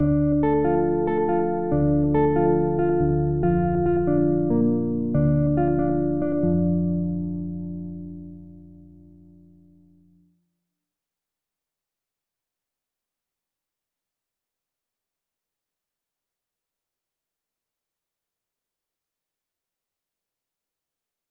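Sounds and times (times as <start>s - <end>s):
melody at 140 BPM in D: 0.0s - 8.8s.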